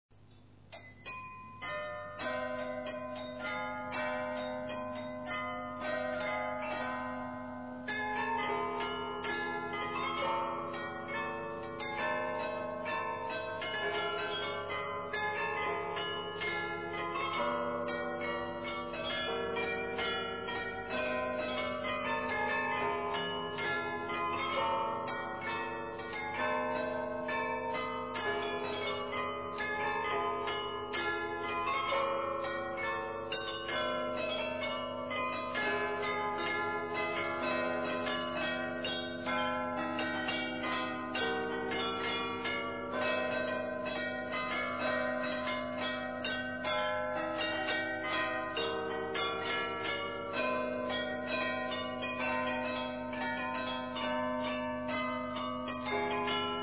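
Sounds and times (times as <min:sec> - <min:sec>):
glockenspiel: 0:00.3 - 0:56.6.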